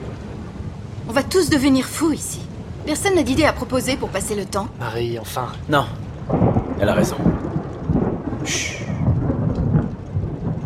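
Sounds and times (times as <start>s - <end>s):
rain: 0.0s - 10.6s
thunderstorm: 0.0s - 10.6s
speech: 1.1s - 7.5s, 8.4s - 8.8s.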